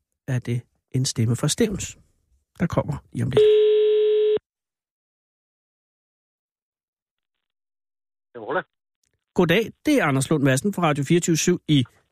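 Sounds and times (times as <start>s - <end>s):
speech: 0.3s - 2.0s, 2.6s - 3.6s, 9.4s - 12.0s
person answering phone: 3.3s - 4.4s
telephone ringing tone while a call is placed: 3.4s - 4.4s.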